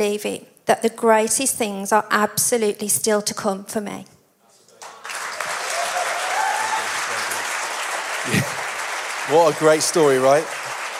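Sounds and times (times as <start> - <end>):
speech: 0.0 - 4.2, 9.3 - 10.6
audience applause: 4.8 - 10.9.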